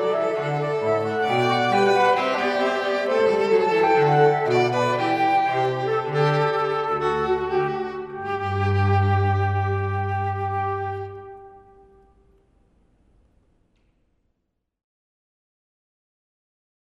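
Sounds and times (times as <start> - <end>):
flute cocktail passacaile: 0.0 - 12.2.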